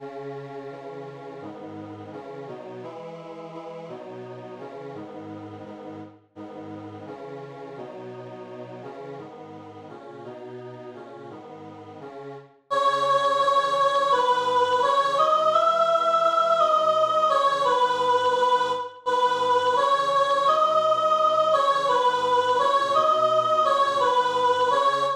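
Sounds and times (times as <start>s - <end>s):
soprano singing: 12.7s - 25.1s.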